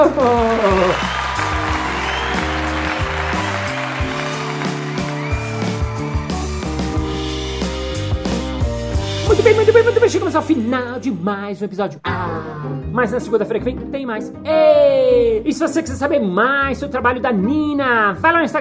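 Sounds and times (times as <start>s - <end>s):
applause: 0.0s - 7.4s
upbeat tune of sustained bright notes: 0.0s - 11.2s
speech: 9.8s - 18.5s.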